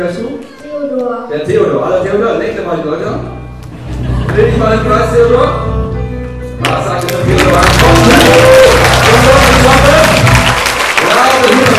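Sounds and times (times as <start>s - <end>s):
speech: 0.0s - 3.4s, 4.3s - 5.7s
audience applause at a German children's show: 7.1s - 11.7s.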